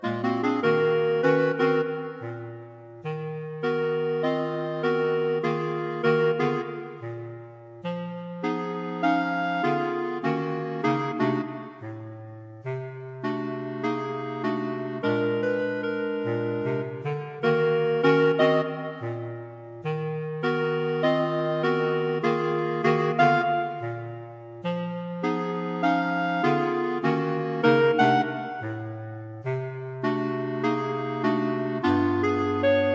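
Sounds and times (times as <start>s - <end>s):
clarinet: 0.0s - 32.9s.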